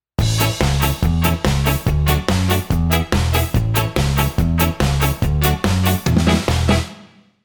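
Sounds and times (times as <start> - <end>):
guitar pattern: 0.2 - 7.0.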